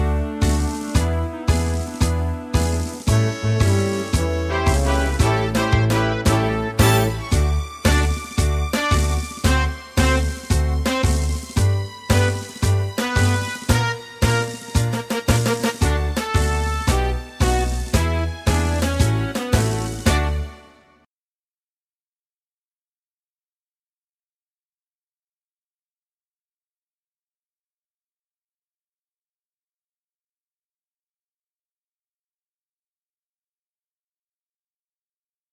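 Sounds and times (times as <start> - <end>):
instrumental music: 0.0 - 21.1.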